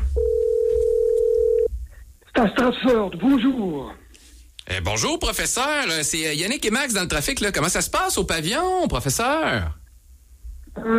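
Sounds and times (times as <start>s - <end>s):
telephone ring tone: 0.2s - 1.7s
speech: 2.4s - 4.0s, 4.7s - 9.8s, 10.8s - 10.9s.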